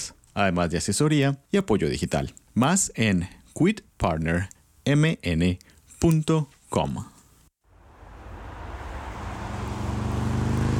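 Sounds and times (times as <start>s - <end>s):
speech: 0.4s - 7.1s
broad road noise: 7.7s - 10.7s
motorcycle riding toward the listener: 7.7s - 10.7s.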